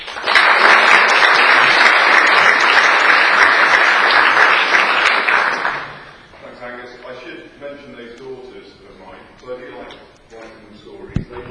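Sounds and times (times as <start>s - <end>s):
audience applauding to welcome a speaker: 0.0s - 6.3s.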